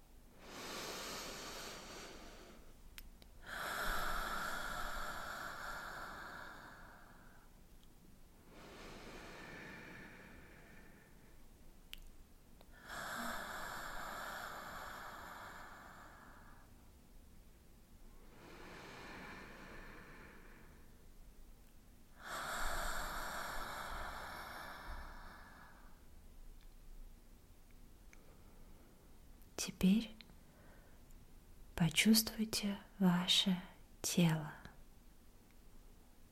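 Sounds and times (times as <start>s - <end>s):
deep breaths in through the nose and out through the mouth: 0.3s - 2.8s, 3.4s - 7.6s, 8.4s - 11.6s, 12.7s - 16.8s, 18.1s - 21.1s, 22.1s - 26.1s
speech: 29.6s - 30.2s, 31.8s - 34.6s.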